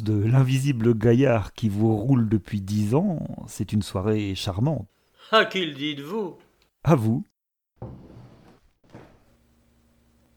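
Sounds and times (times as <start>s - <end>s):
speech: 0.0s - 8.0s
knocking on a door: 7.8s - 9.3s.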